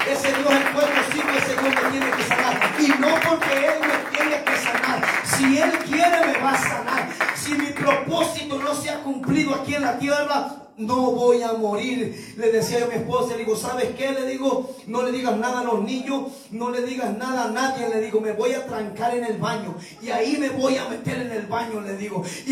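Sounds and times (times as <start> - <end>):
loud audience applause: 0.0 - 8.7
speech: 10.0 - 22.5.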